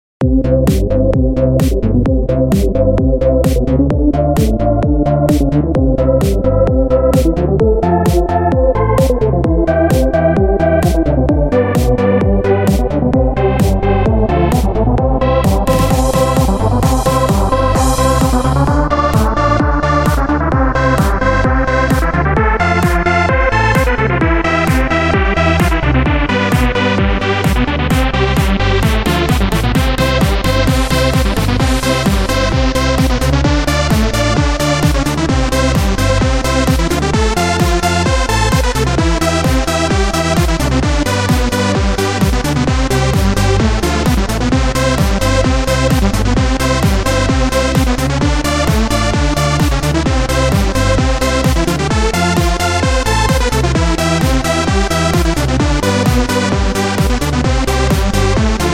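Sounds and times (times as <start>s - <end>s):
trance remix: 0.2s - 58.7s.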